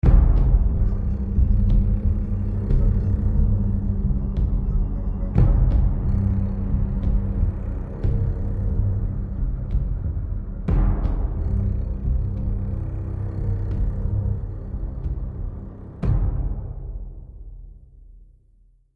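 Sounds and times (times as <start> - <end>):
ominous music: 0.0 - 18.0.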